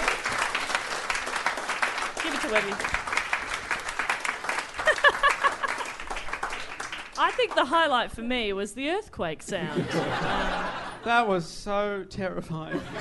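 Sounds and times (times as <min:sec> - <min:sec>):
round of applause: 0:00.0 - 0:07.7
speech: 0:02.5 - 0:03.0, 0:07.2 - 0:12.9
laughter: 0:04.7 - 0:06.0, 0:09.5 - 0:11.2, 0:12.7 - 0:12.9.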